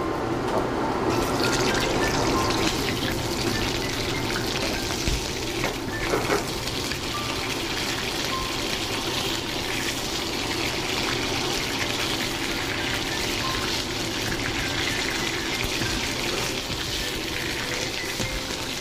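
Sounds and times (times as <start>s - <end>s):
lamb chops searing in a hot pan: 1.1s - 18.7s.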